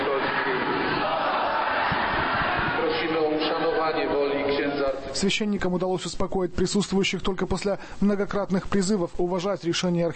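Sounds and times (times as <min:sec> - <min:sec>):
audience applauding: 0:00.0 - 0:03.9
crowd shouting: 0:00.0 - 0:04.7
speech: 0:03.9 - 0:10.1.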